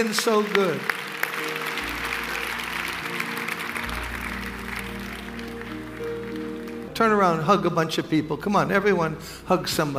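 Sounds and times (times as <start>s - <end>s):
speech: 0.0s - 1.0s, 7.0s - 9.9s
audience applause: 0.0s - 6.9s.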